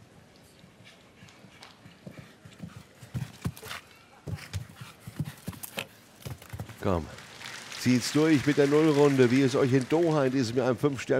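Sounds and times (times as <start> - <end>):
horse hooves galloping during show jumping: 1.2 - 7.3
speech: 6.8 - 7.2, 7.8 - 11.1.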